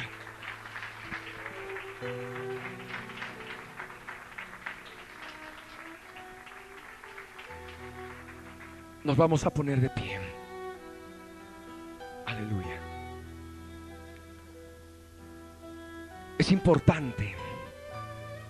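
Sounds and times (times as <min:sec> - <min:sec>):
audience applause: 0:00.0 - 0:09.6
speech: 0:09.0 - 0:10.3, 0:16.5 - 0:17.4.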